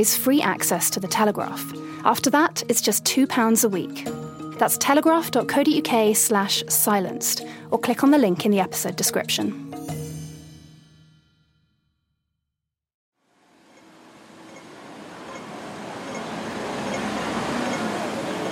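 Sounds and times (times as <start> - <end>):
speech: 0.0 - 10.0
subway whoosh in Hong Kong: 13.8 - 18.5.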